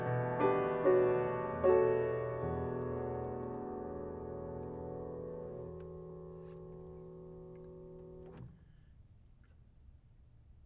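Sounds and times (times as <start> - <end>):
E minor chords: 0.0 - 8.4.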